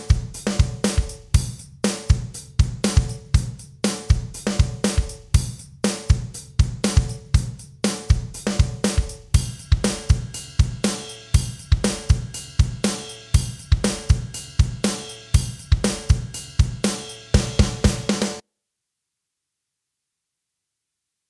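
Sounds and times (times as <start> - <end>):
drum loop at 120 BPM: 0.0 - 18.4.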